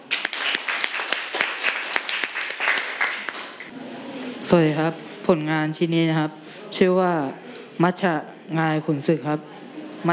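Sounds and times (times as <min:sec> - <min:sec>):
audience applause: 0:00.0 - 0:03.7
speech: 0:04.5 - 0:10.1.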